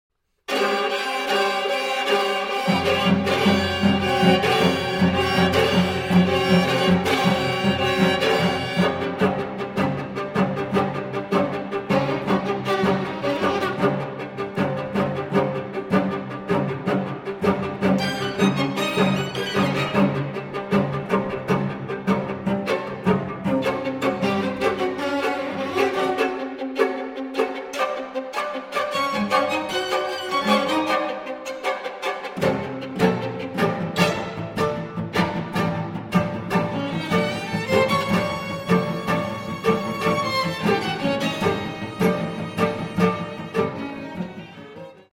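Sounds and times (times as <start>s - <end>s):
string quartet in C: 0.4s - 45.1s.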